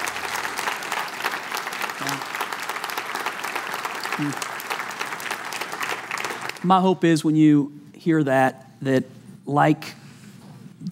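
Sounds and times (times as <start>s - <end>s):
church audience applauding: 0.0s - 6.7s
speech: 2.0s - 2.4s, 4.2s - 4.5s, 6.6s - 10.0s.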